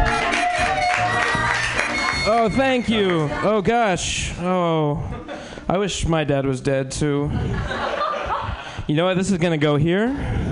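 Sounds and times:
audience clapping for comedian: 0.0s - 3.5s
speech: 2.4s - 8.0s, 8.9s - 10.4s
laughter: 7.2s - 8.8s.

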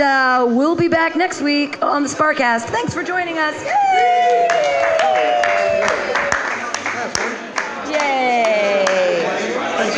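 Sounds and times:
speech: 0.5s - 6.0s
audience clapping: 4.1s - 9.4s.

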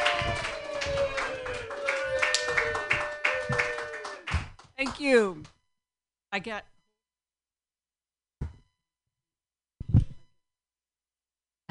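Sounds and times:
person cheering: 0.0s - 4.4s
audience applauding a comedian at a comedy show: 0.0s - 5.2s
speech: 5.0s - 5.6s, 6.3s - 6.7s.

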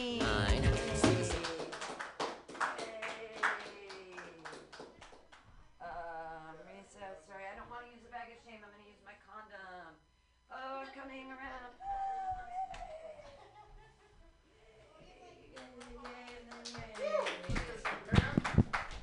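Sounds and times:
audience clapping: 0.0s - 5.4s, 15.6s - 19.0s.

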